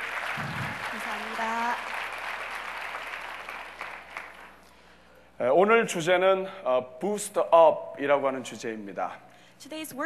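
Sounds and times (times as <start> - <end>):
audience applause: 0.0 - 4.6
speech: 5.6 - 10.0.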